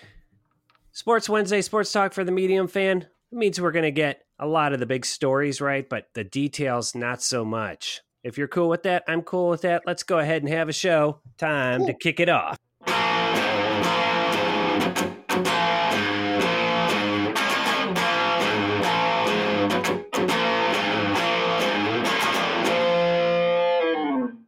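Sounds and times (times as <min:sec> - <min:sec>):
speech: 0:01.0 - 0:12.7
crunchy distorted electric guitar chords on black Telecaster: 0:12.8 - 0:24.4.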